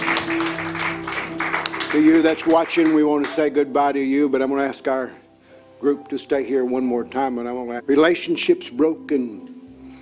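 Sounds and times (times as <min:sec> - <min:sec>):
audience rhythmic hand clapping: 0:00.0 - 0:03.5
sustained low musical tone: 0:00.0 - 0:10.0
speech: 0:01.9 - 0:05.2, 0:05.8 - 0:09.6.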